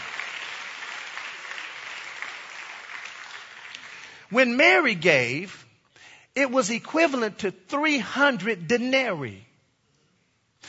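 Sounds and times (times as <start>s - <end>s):
audience hand clapping: 0.0s - 4.9s
speech: 4.3s - 5.6s, 6.4s - 9.5s.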